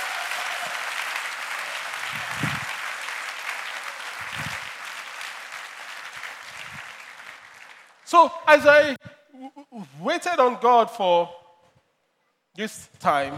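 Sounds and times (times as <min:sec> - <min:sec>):
audience applause: 0:00.0 - 0:08.0
speech: 0:08.1 - 0:11.4, 0:12.6 - 0:13.3.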